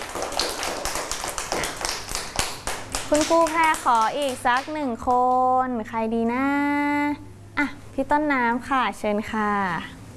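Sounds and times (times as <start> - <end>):
hands clapping: 0.0 - 5.4
speech: 3.1 - 10.0.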